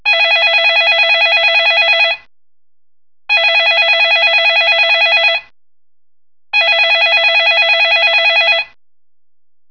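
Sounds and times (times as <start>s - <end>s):
ringtone: 0.1s - 2.3s, 3.3s - 5.5s, 6.6s - 8.8s.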